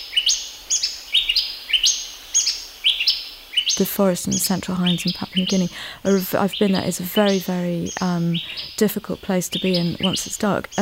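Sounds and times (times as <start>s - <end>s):
birds singing late afternoon calls: 0.0s - 10.8s
speech: 3.8s - 10.8s.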